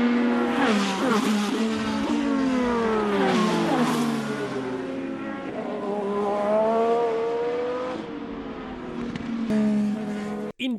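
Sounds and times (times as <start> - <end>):
IndyCar race car engines revving: 0.0 - 10.5.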